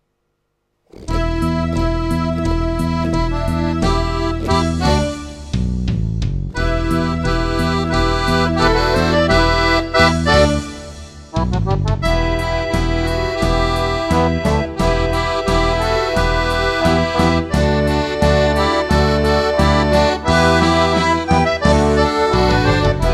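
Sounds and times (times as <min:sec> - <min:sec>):
rock music: 0:01.1 - 0:23.1.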